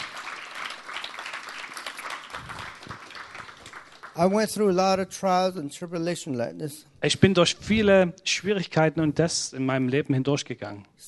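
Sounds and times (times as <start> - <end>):
audience applause: 0.0 - 4.9
speech: 4.2 - 11.0.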